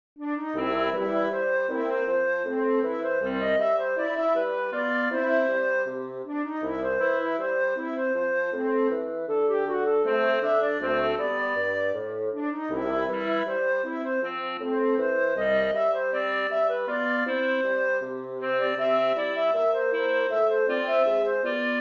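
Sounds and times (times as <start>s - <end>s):
wind quintet playing: 0.2s - 21.7s.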